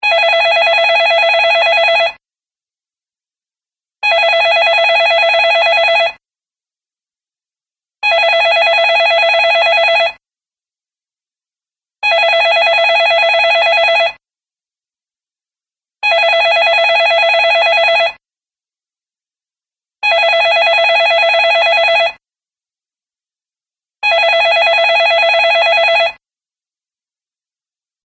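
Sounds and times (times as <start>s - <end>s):
new wave ringtone: 0.0s - 2.2s, 4.0s - 6.2s, 8.0s - 10.2s, 12.0s - 14.2s, 16.0s - 18.2s, 20.0s - 22.2s, 24.0s - 26.2s.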